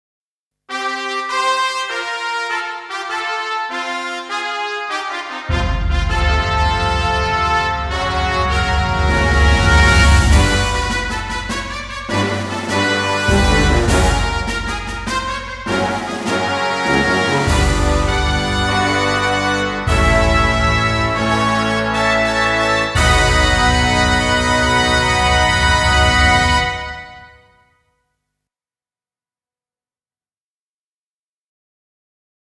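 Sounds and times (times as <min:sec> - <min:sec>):
fanfare: 0:00.7 - 0:27.6.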